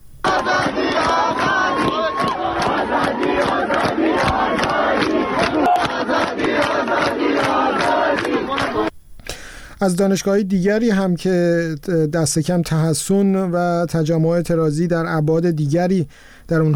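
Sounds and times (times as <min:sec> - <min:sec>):
hundreds of protesting university students chanting a slogan at a sit-in: 0:00.2 - 0:08.9
speech: 0:09.8 - 0:16.7.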